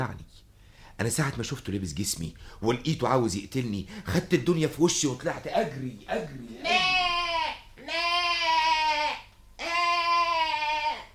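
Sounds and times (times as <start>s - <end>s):
speech: 1.0s - 6.8s
goat bleating as a radio-drama sound effect: 6.5s - 11.1s.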